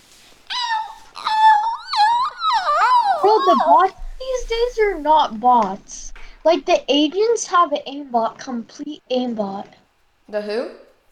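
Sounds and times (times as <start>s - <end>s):
voice making a dolphin-like squeal: 0.5s - 4.9s
speech: 3.3s - 10.8s.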